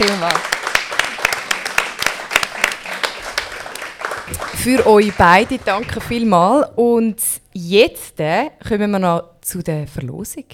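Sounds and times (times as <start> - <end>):
speech: 0.0 - 0.5, 4.6 - 10.5
audience applause: 0.0 - 6.2.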